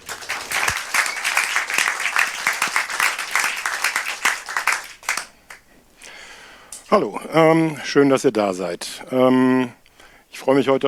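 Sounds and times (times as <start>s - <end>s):
audience applause welcoming a speaker: 0.0s - 5.6s
speech: 6.9s - 9.8s, 10.4s - 10.8s.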